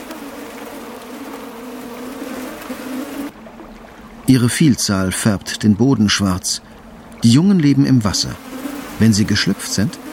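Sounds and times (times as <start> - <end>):
swarm of salt flies buzzing: 0.0 - 3.5, 7.7 - 10.1
speech: 4.3 - 10.0.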